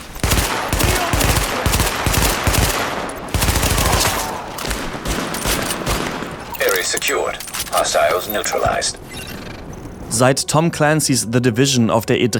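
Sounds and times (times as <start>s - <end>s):
video game machine gun fire: 0.2s - 6.4s
speech: 6.9s - 9.1s, 10.1s - 12.3s.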